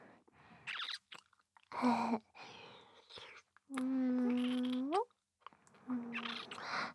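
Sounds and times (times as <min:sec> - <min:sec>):
deep kissing: 0:00.7 - 0:01.2, 0:03.8 - 0:04.9, 0:06.1 - 0:06.7.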